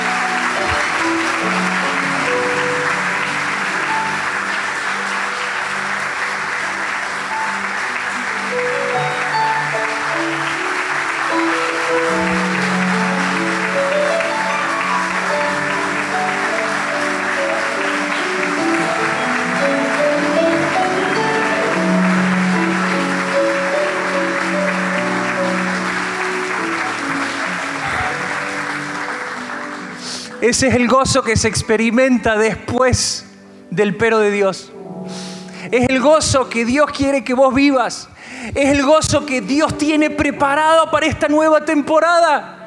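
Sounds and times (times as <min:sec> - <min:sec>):
sustained musical tones: 0:00.0 - 0:30.5
audience applauding: 0:00.0 - 0:31.6
speech: 0:30.5 - 0:42.6.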